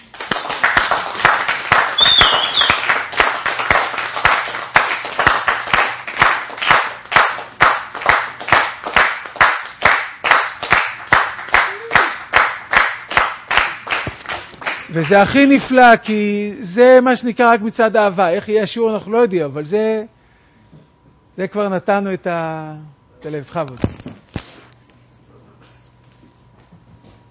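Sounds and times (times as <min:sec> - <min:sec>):
scattered applause: 0:00.0 - 0:15.2
crowd clapping in a steady rhythmic beat: 0:00.0 - 0:15.4
speech: 0:15.0 - 0:20.2, 0:21.4 - 0:24.2.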